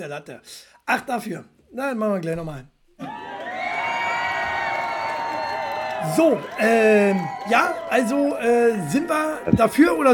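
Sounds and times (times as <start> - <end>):
speech: 0.0 - 3.1, 6.0 - 10.1
canned applause sound effect of crowd cheering and whooping: 3.0 - 10.1.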